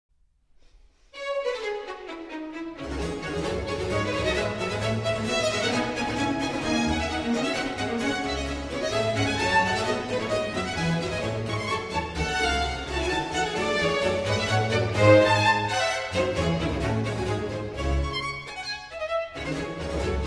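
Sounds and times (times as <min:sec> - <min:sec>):
violin concerto in D minor, allegro movement: 0:01.1 - 0:20.2.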